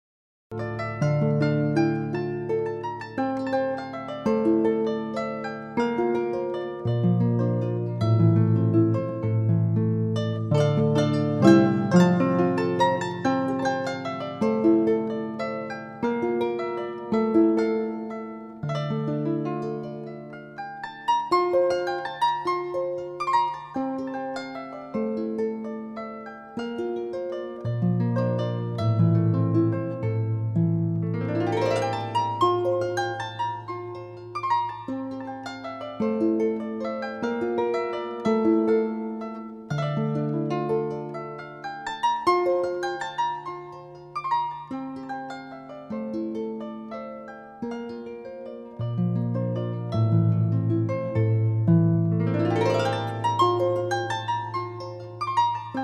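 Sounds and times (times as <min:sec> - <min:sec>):
harp prelude: 0:00.5 - 0:55.8.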